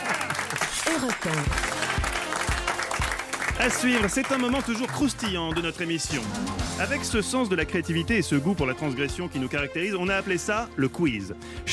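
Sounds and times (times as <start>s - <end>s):
applause: 0.0s - 6.3s
speech: 1.0s - 1.7s, 3.6s - 11.7s.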